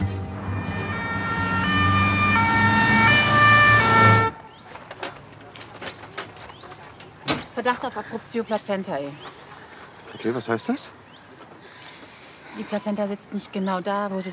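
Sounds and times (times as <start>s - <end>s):
ambulance siren: 0.0s - 4.6s
speech: 7.6s - 9.4s, 10.2s - 11.0s, 12.6s - 14.3s.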